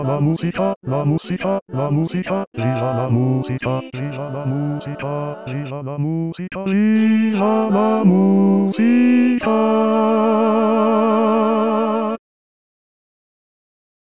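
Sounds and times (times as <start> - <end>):
adult choir bass section singing: 0.0 - 5.8, 7.0 - 12.2.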